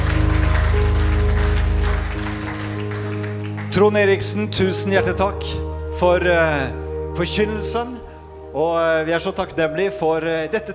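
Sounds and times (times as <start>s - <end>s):
audience applause: 0.0s - 4.2s
sustained musical tones: 0.0s - 10.7s
speech: 3.7s - 10.7s.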